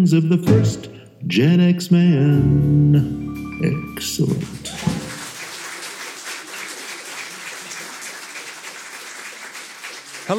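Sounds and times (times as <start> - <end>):
speech: 0.0 - 5.0
canned applause from a fake studio audience: 4.2 - 10.3.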